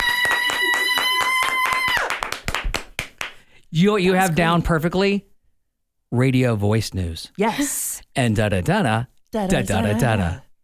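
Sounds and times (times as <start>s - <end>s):
people clapping: 0.0s - 3.4s
speech: 3.7s - 5.3s, 6.1s - 10.5s.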